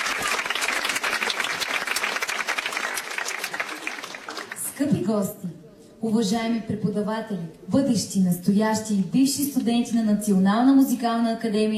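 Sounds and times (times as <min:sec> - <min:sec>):
audience applause at concert: 0:00.0 - 0:04.8
speech: 0:04.8 - 0:11.7.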